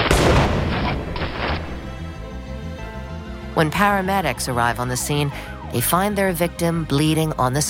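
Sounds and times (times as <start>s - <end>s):
single loud gunshot with rumbling tail: 0.0s - 1.9s
speech: 3.6s - 7.6s.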